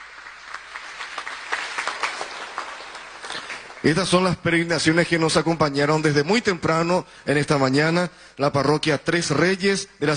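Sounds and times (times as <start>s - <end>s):
audience applause: 0.0s - 4.3s
speech: 3.8s - 10.1s.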